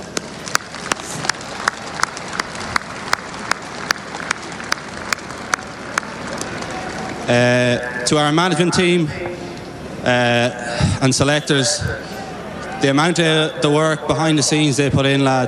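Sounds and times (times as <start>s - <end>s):
crowd applause: 0.0s - 8.5s
speech: 7.3s - 9.4s, 10.0s - 12.2s, 12.8s - 15.4s.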